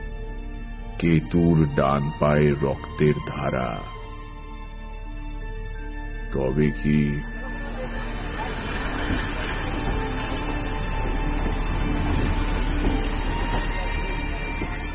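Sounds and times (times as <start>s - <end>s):
speech: 1.0s - 4.0s, 6.3s - 7.3s
train departing: 7.6s - 14.9s.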